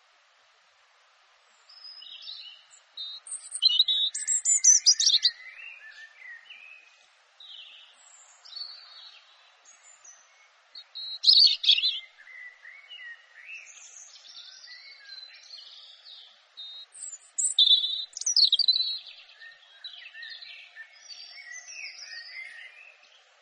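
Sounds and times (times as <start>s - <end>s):
European robin singing: 1.5s - 23.4s.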